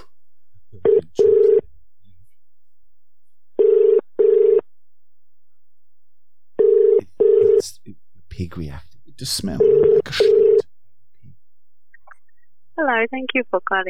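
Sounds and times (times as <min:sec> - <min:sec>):
telephone ringback tone after a transfer: 0:03.6 - 0:04.6, 0:06.6 - 0:07.6, 0:09.6 - 0:10.6
speech: 0:08.4 - 0:10.5, 0:12.8 - 0:13.8.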